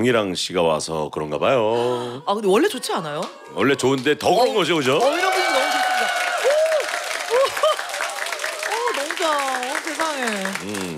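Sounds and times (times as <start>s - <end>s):
speech: 0.0s - 6.2s
studio audience applause: 3.5s - 10.9s.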